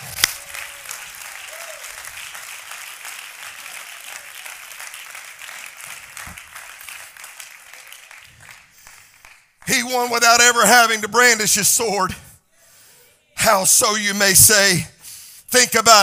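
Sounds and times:
audience applause: 0.0s - 9.6s
speech: 9.9s - 12.3s, 13.5s - 14.9s, 15.5s - 16.0s.

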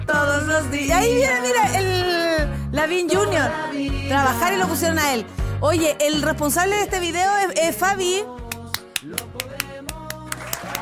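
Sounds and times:
speech: 0.5s - 2.0s, 2.8s - 8.4s
rhythmic handclapping: 8.4s - 10.8s.

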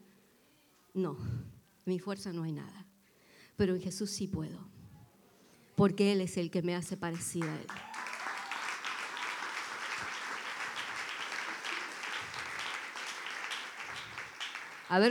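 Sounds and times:
speech: 1.0s - 2.9s, 3.6s - 4.8s, 5.8s - 8.1s
audience applause: 7.4s - 15.0s.

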